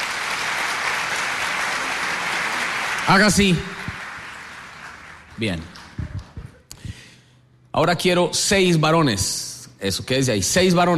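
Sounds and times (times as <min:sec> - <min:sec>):
audience applause: 0:00.0 - 0:06.4
speech: 0:03.1 - 0:03.7, 0:05.4 - 0:05.8, 0:07.8 - 0:10.9.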